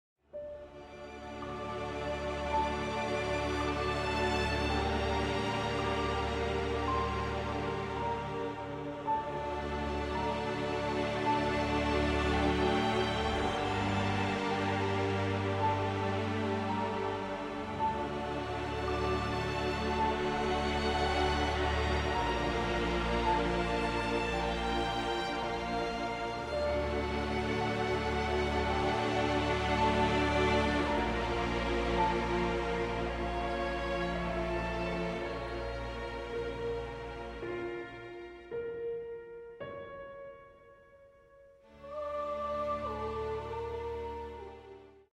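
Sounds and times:
lullaby music: 0.4 - 45.1.

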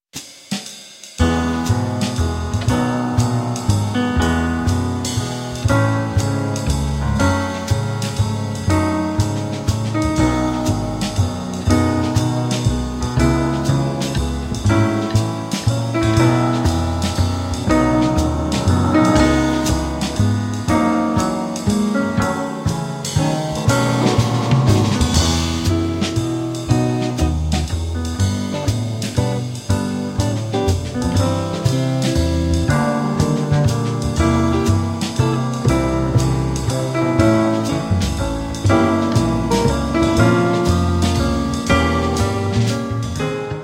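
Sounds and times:
jazz ensemble playing in E major: 1.2 - 43.6.

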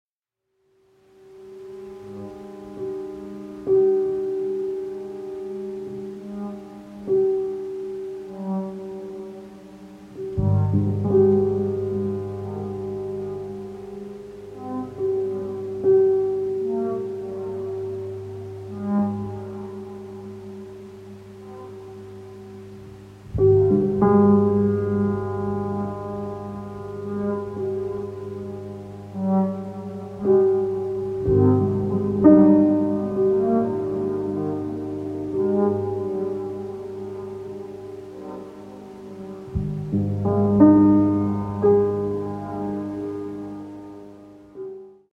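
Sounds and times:
piano: 0.4 - 45.1
Sequential Split 8 synthesizer: 0.5 - 45.1.

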